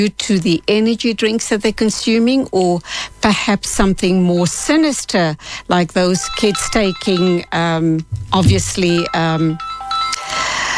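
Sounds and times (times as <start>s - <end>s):
speech: 0.0s - 9.7s
mobile phone ringing during a live show: 6.2s - 7.5s, 8.6s - 10.7s.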